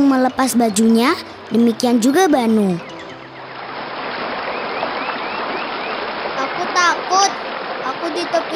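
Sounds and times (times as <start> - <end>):
speech: 0.1 - 2.9
fast-flowing river current: 3.2 - 8.5.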